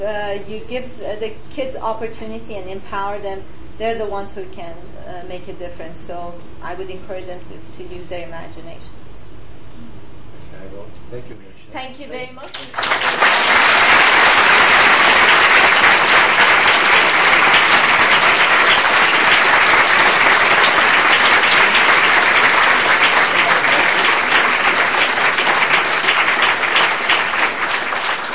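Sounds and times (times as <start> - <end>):
speech: 0.0 - 9.0, 10.9 - 13.6
large audience clapping: 12.4 - 28.3.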